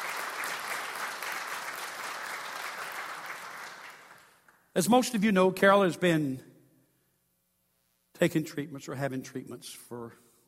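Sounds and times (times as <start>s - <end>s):
audience clapping: 0.0s - 4.7s
speech: 4.8s - 6.5s, 8.2s - 10.4s.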